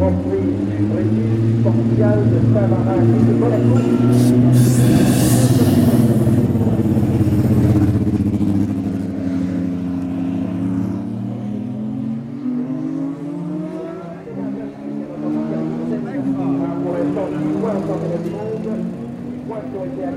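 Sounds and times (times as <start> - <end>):
race car engine starting and accelerating out of the pits: 0.0 - 20.1
speech: 0.1 - 5.3.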